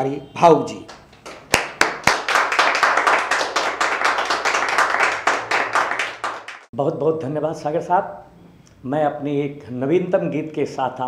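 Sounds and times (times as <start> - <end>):
speech: 0.0 - 1.0, 6.8 - 11.0
audience applause: 1.4 - 6.7.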